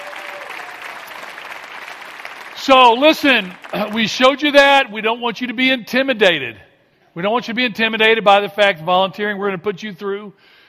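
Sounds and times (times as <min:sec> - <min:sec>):
audience applause: 0:00.0 - 0:04.3
speech: 0:02.6 - 0:10.6.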